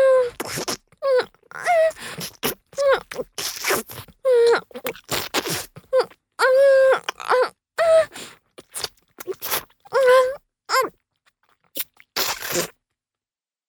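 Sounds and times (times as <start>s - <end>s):
wet sucking sounds: 0.2s - 6.2s, 8.0s - 10.9s, 11.6s - 12.8s.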